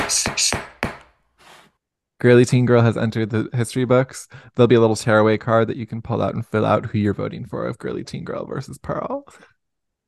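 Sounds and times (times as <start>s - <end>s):
gavel banging: 0.0s - 1.2s
speech: 0.1s - 0.6s, 2.2s - 9.5s.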